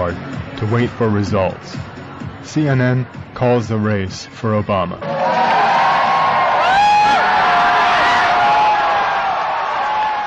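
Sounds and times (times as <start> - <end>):
speech: 0.0 - 5.5
cheers and whoops: 5.0 - 10.2
crowd roaring at election night gathering: 5.0 - 10.2.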